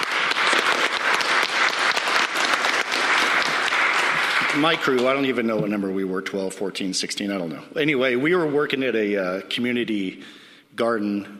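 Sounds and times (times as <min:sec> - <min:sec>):
audience applause: 0:00.0 - 0:05.5
speech: 0:04.6 - 0:11.3.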